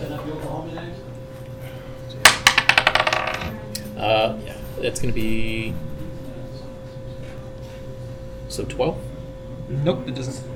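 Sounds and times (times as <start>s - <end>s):
low steady hum: 0.0s - 10.5s
dice clattering on a table: 2.2s - 3.6s
speech: 4.1s - 5.9s, 8.6s - 9.0s, 9.7s - 10.5s.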